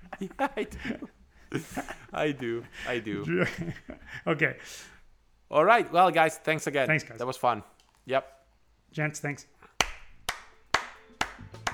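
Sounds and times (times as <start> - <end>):
laughter: 0.0 - 4.2
speech: 0.2 - 9.5
hands clapping: 9.8 - 11.7.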